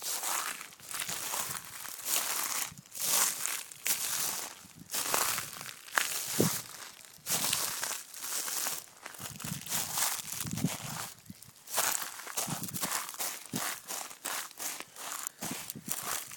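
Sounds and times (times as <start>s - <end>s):
footsteps on dry seaweed: 0.0s - 16.3s.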